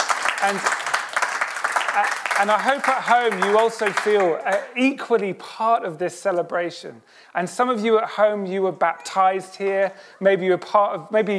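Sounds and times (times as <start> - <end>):
round of applause: 0.0 - 4.8
speech: 0.4 - 0.8, 2.0 - 11.3.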